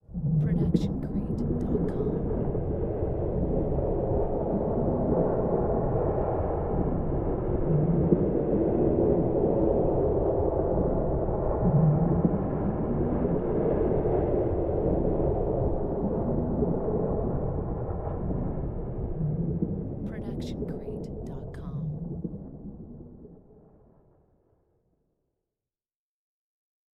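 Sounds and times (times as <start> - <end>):
underwater ambience: 0.1 - 24.6.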